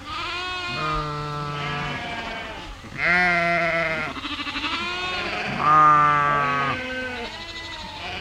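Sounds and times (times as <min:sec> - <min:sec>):
sheep and lambs bleating: 0:00.0 - 0:08.1.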